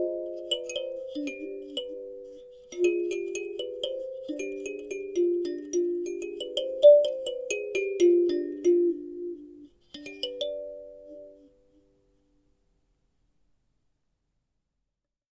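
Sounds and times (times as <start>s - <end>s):
Middle Eastern kalimba: 0.0s - 11.5s.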